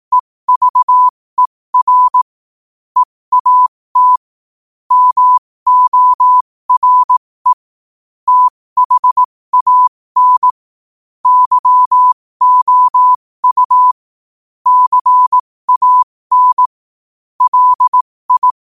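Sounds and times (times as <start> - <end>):
morse code at 5 wpm: 0.1 - 1.1, 1.8 - 2.2, 3.0 - 4.2, 4.9 - 7.6, 8.3 - 10.6, 11.2 - 14.0, 14.6 - 16.7, 17.4 - 18.7.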